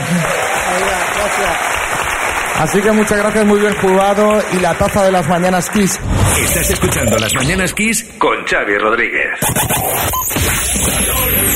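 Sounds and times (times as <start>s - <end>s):
audience applause: 0.0s - 6.0s
speech: 2.6s - 11.5s.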